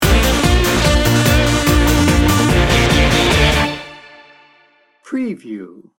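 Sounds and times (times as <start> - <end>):
extreme action sting bumper: 0.0 - 4.7.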